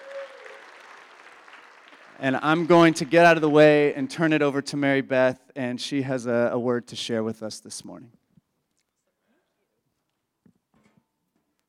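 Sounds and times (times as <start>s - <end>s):
applause: 0.0s - 4.4s
speech: 2.2s - 8.2s.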